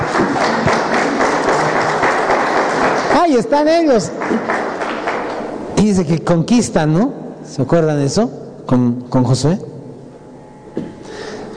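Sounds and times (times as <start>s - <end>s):
audience applauding: 0.0s - 5.7s
speech: 3.2s - 4.6s, 5.8s - 9.7s.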